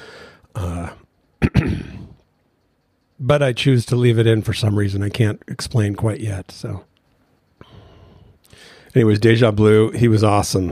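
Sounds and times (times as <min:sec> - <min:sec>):
burp: 0:01.4 - 0:02.2
speech: 0:03.2 - 0:06.9, 0:08.5 - 0:10.7.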